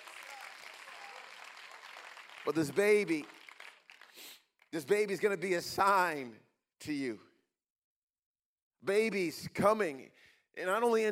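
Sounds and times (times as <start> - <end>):
audience clapping hands: 0.0 - 5.1
speech: 2.4 - 3.4, 4.7 - 7.3, 8.8 - 11.0.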